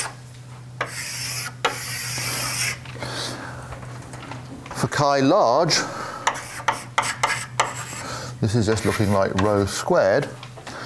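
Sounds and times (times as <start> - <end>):
scratchy hissing strokes drawing a diagram on a board: 0.8 - 2.8, 6.4 - 8.1
speech: 4.8 - 6.0, 8.4 - 10.4.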